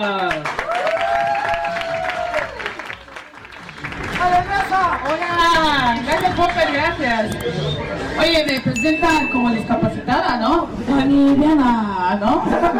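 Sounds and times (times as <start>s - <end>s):
audience applause: 0.0s - 7.0s
audience whooping and cheering: 0.4s - 5.2s
speech: 4.7s - 12.7s.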